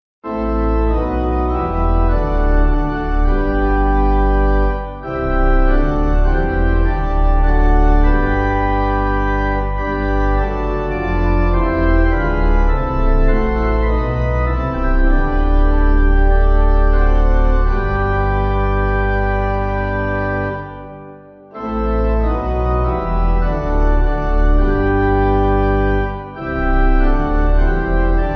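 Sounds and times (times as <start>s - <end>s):
church pipe organ backing music: 0.2s - 28.3s.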